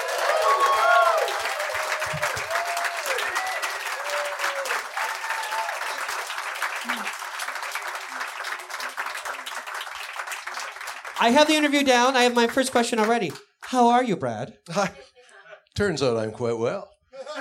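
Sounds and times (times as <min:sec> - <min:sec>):
audience whooping: 0:00.0 - 0:08.8
audience applause in Brooklyn: 0:00.0 - 0:13.4
speech: 0:11.2 - 0:15.0, 0:15.8 - 0:16.9
laughter: 0:17.1 - 0:17.4.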